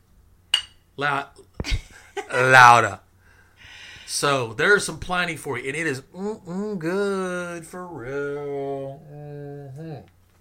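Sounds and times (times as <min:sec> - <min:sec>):
beer glasses clinking in a toast: 0:00.5 - 0:00.8
speech: 0:01.0 - 0:03.0, 0:04.1 - 0:10.2.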